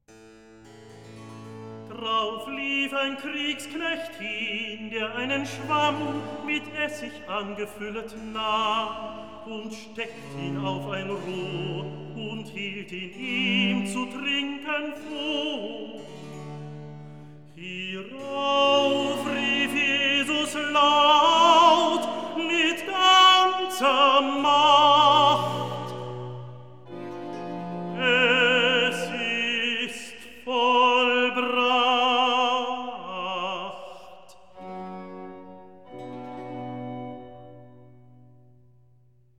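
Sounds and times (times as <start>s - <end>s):
recitative singing: 1.9s - 16.4s, 17.6s - 35.0s.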